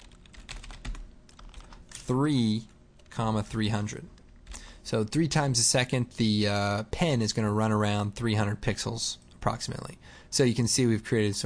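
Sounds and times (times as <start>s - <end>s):
typing on a computer keyboard: 0.0s - 2.1s
speech: 2.1s - 4.2s, 4.8s - 11.4s.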